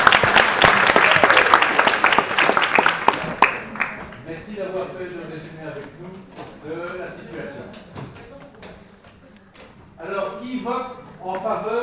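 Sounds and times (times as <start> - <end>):
class audience applause during a marketing lecture: 0.0 - 4.2.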